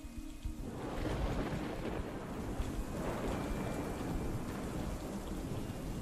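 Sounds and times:
heavy rain: 0.0s - 5.9s
deep rolling rumbles of thunder: 0.6s - 5.9s.

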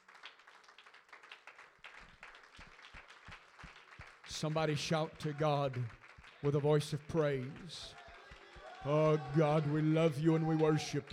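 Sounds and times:
audience clapping hands: 0.0s - 11.1s
speech: 4.4s - 8.0s, 8.8s - 11.1s.

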